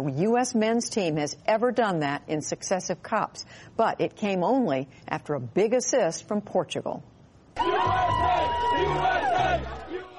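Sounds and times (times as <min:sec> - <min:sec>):
speech: 0:00.0 - 0:08.2
U.S. soccer fans cheering during a World Cup match against Germany: 0:07.6 - 0:10.1
shouts: 0:07.6 - 0:10.1.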